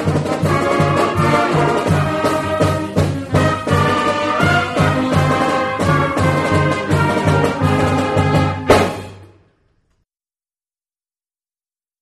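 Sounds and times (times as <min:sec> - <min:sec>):
pep band playing a fight song: 0:00.0 - 0:09.4.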